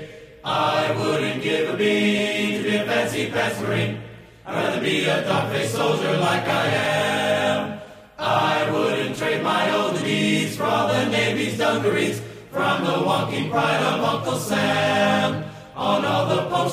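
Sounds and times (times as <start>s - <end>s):
chorus vocals: 0.0s - 16.7s.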